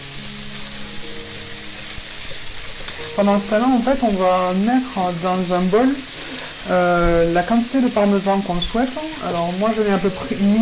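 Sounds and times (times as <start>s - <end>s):
food frying in butter in pan: 0.0s - 10.6s
speech: 3.2s - 10.6s.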